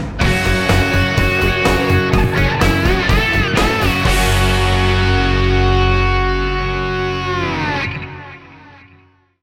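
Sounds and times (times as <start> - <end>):
music sting: 0.2 - 8.7.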